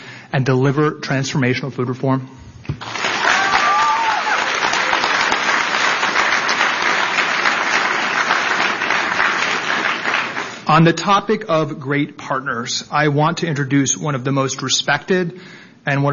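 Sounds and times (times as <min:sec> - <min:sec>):
speech: 0:00.3 - 0:02.9, 0:10.7 - 0:16.1
audience applause: 0:02.8 - 0:10.7.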